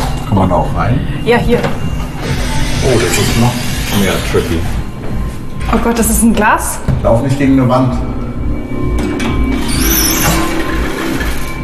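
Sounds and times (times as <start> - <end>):
speech: 0.3 - 1.9, 2.8 - 4.8, 5.7 - 8.1
creaky door opening: 1.5 - 4.8, 8.9 - 11.6.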